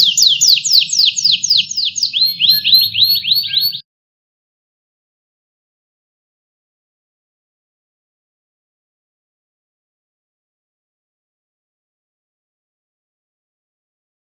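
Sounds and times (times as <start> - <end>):
canary singing: 0.0 - 3.8.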